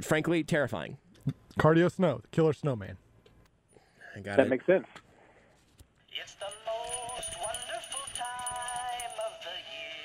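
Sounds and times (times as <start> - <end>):
speech: 0.0 - 3.0, 4.2 - 5.0
little jingle bell ringing: 6.4 - 10.0.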